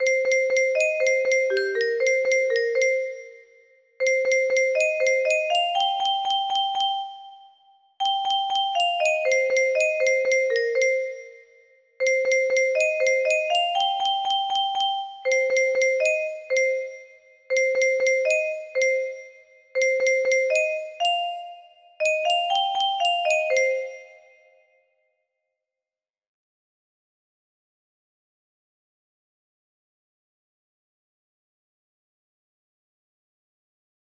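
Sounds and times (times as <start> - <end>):
melody: 0.1 - 3.4, 4.1 - 7.4, 8.0 - 11.4, 12.0 - 19.2, 20.0 - 24.4.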